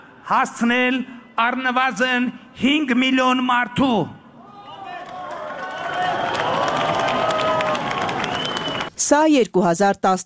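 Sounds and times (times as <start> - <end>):
speech: 0.3 - 4.2, 9.0 - 10.2
crowd applause for the prime minister in Stepanakert's Renaissance Square: 4.8 - 9.0.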